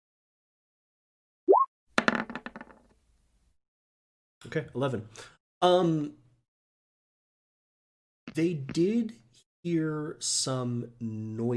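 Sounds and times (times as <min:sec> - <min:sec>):
dice rolled across a hard surface: 0:02.0 - 0:03.0
speech: 0:04.4 - 0:06.2, 0:08.4 - 0:11.5.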